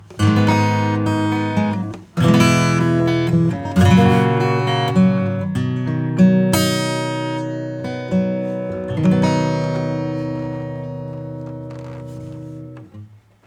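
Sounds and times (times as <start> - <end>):
acoustic accompaniment: 0.0 - 13.4.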